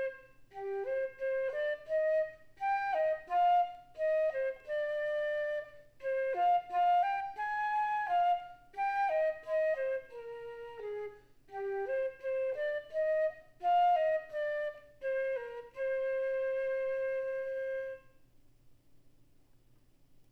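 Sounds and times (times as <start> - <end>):
flute solo: 0.0 - 18.2.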